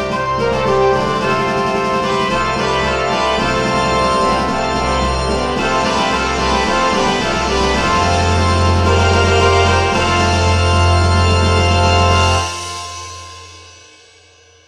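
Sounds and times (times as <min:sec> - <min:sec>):
brass fanfare and intro: 0:00.0 - 0:13.3.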